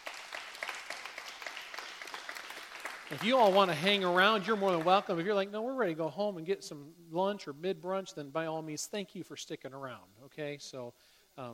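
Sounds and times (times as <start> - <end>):
church congregation applauding a newly married couple: 0.0 - 5.4
speech: 3.1 - 11.5.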